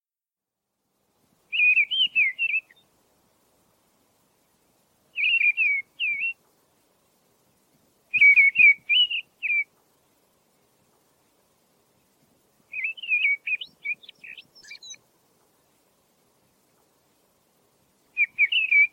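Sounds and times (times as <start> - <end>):
mistle thrush singing whistled phrases: 1.4 - 3.0, 5.1 - 6.6, 8.1 - 9.8, 12.0 - 15.8, 18.0 - 18.9.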